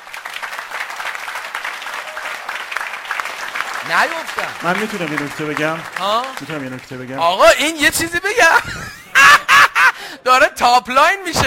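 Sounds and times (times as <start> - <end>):
audience applause: 0.0 - 7.6
speech: 3.8 - 9.0, 10.2 - 11.4
laughter: 8.3 - 10.2.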